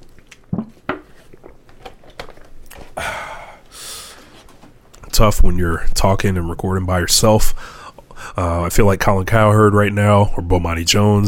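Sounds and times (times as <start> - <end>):
bottle being handled: 0.4 - 2.4
speech: 5.2 - 7.8, 8.4 - 11.2.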